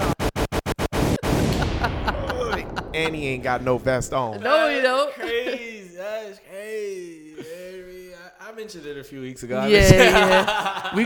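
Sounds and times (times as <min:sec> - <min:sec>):
gunshot sound effect: 0:00.0 - 0:04.4
sustained noisy rumble: 0:00.8 - 0:04.4
laughter: 0:01.4 - 0:08.1, 0:09.6 - 0:11.0
speech: 0:03.0 - 0:07.1, 0:08.6 - 0:11.0.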